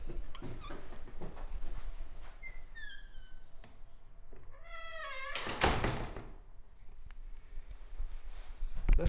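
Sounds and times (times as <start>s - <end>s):
outer front door: 0.0s - 7.0s.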